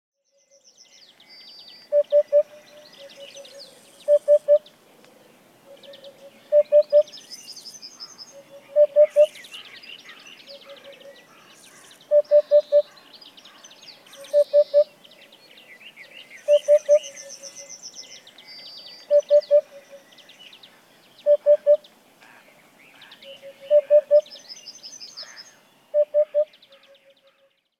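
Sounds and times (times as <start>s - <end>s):
other small birds singing in the background: 0.2s - 27.7s
Eurasian hoopoe hooting: 1.9s - 4.6s, 5.7s - 7.1s, 8.4s - 9.3s, 12.1s - 12.8s, 19.1s - 20.1s, 21.2s - 21.8s, 23.5s - 24.3s, 26.0s - 26.5s.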